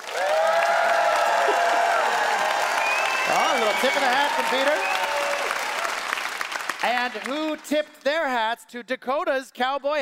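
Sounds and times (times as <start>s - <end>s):
audience applause: 0.0s - 7.6s
speech: 3.6s - 5.0s, 6.8s - 10.0s.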